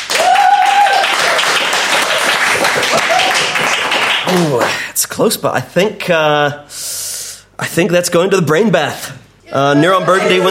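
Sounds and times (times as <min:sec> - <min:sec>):
crowd applause: 0:00.0 - 0:04.8
speech: 0:04.3 - 0:06.8, 0:07.6 - 0:10.5.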